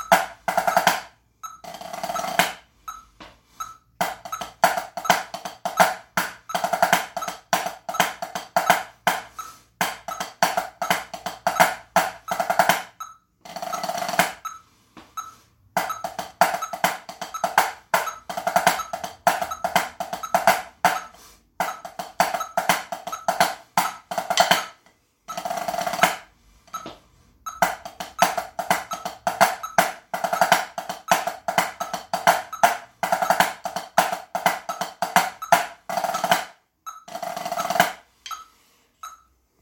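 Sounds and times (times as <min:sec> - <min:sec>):
drum playing: 0:00.0 - 0:02.7, 0:03.9 - 0:14.6, 0:15.2 - 0:26.9, 0:27.5 - 0:38.4.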